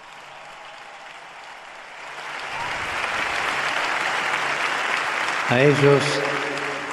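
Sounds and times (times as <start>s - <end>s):
crowd applause for volunteers: 0.0s - 6.9s.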